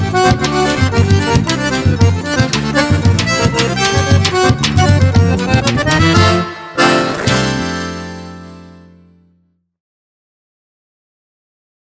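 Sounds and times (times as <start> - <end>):
forro accordion playing: 0.0 - 9.3.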